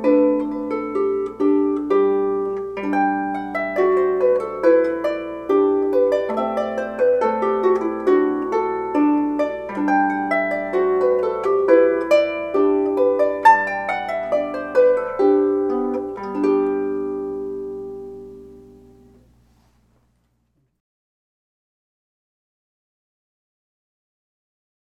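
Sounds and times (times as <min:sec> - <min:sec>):
22-string harp: 0:00.0 - 0:19.8.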